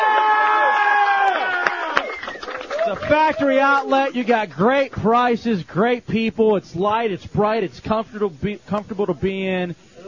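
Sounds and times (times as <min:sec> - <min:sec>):
crowd applause at the Premier Adult Factory: 0:00.0 - 0:05.1
speech: 0:03.1 - 0:09.9.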